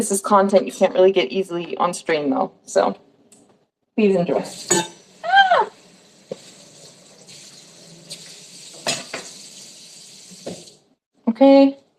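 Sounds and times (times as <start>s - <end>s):
speech: 0.0s - 3.1s, 4.0s - 5.7s, 11.4s - 11.8s
pan clanging while cooking breakfast: 4.6s - 5.1s, 8.7s - 9.4s.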